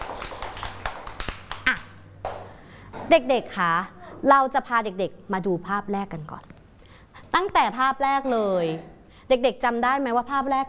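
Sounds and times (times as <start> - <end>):
children clapping hands for a classmate: 0.0 - 2.7
speech: 3.1 - 6.5, 7.4 - 10.6.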